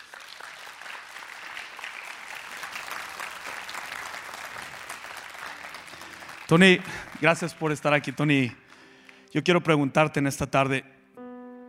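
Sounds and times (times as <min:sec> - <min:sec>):
loud audience applause: 0:00.0 - 0:09.2
speech: 0:06.5 - 0:08.6, 0:09.3 - 0:10.9.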